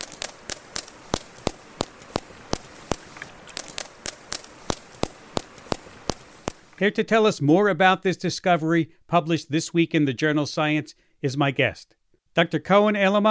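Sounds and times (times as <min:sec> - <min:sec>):
whale echolocation vocal fry clicks: 0:00.0 - 0:06.8
speech: 0:06.8 - 0:13.2.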